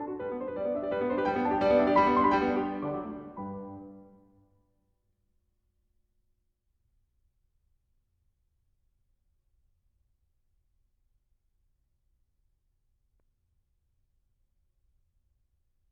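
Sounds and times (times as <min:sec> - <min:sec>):
piano sonata in G: 0:00.0 - 0:04.2.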